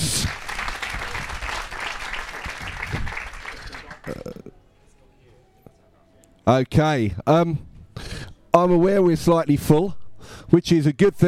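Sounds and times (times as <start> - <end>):
audience applause welcoming speaker: 0.0 - 4.3
speech: 6.5 - 7.7, 8.6 - 11.2.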